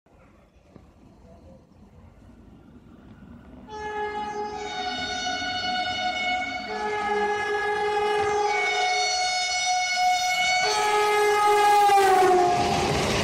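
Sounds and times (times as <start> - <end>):
Renfe Alvia train big horn: 3.7 - 13.1.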